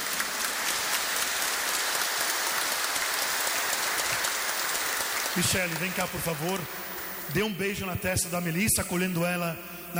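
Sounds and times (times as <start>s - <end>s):
audience applause: 0.0s - 7.4s
speech: 5.4s - 9.9s.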